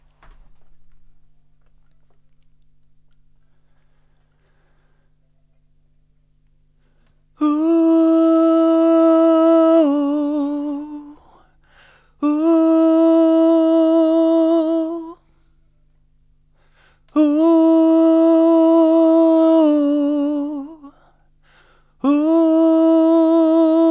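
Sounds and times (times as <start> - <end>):
person singing: 7.4 - 11.4, 12.2 - 15.2, 17.1 - 21.0, 22.0 - 23.8.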